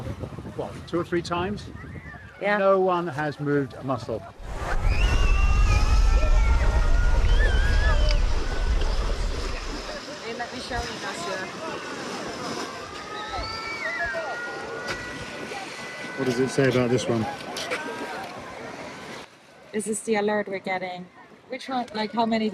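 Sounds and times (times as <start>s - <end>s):
speech: 0.6s - 5.0s, 16.2s - 17.4s, 19.8s - 22.5s
surf rumbling at a beach: 4.2s - 19.3s
crowd voices and shouts: 4.3s - 19.3s.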